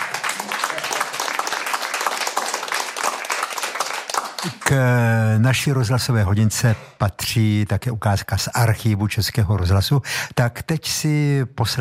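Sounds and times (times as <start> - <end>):
group of people clapping: 0.0 - 5.2
speech: 4.4 - 11.8.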